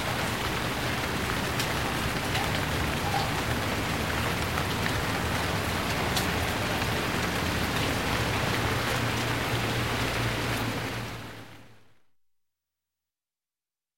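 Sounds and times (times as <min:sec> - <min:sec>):
medium rain on pavement: 0:00.0 - 0:11.9.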